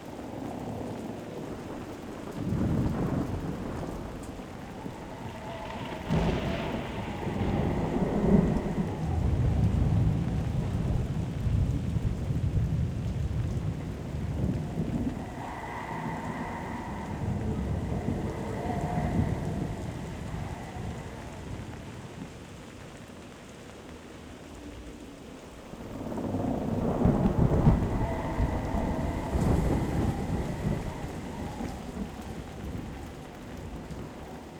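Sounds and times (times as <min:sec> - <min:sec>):
tower stormscape ambience: 0:00.1 - 0:34.5.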